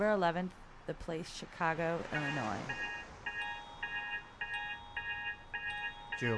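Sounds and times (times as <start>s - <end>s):
speech: 0.0s - 2.9s, 6.2s - 6.3s
alarm clock ringing: 2.2s - 6.3s.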